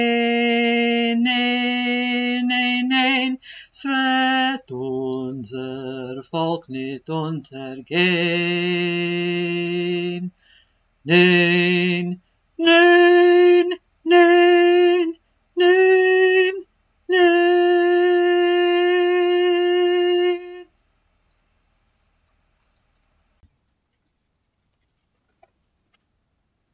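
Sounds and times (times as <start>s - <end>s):
tenor singing: 0.0s - 10.4s, 11.0s - 20.8s.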